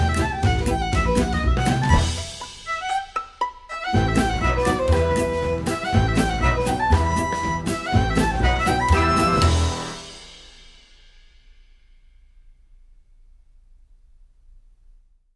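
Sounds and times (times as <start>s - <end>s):
swinging bluegrass fiddle: 0.0s - 10.0s.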